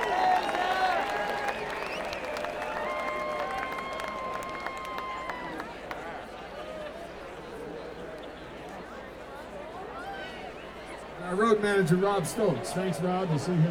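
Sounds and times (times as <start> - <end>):
audience applause: 0.0 - 6.4
speech: 11.4 - 13.6.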